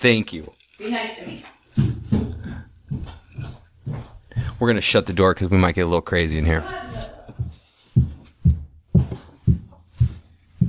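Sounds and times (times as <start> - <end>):
speech: 0.0 - 1.6, 4.6 - 6.8
high heels climbing a staircase: 1.6 - 5.0, 6.8 - 10.6.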